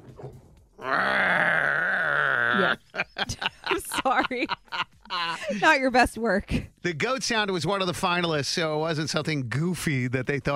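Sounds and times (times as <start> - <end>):
person's voice imitating MGM lion roar: 0.8 - 3.0
laughter: 2.4 - 5.8
speech: 5.6 - 10.5.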